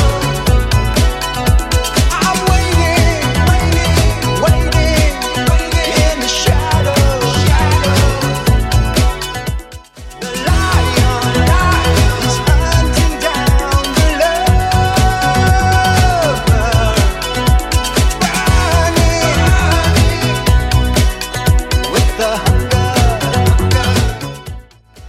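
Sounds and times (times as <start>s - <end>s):
eighties style music: 0.0s - 25.0s.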